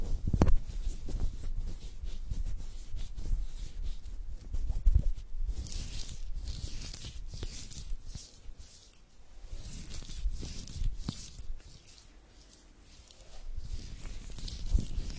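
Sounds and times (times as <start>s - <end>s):
hand massage rubbing and squishing of skin: 0.0s - 15.1s.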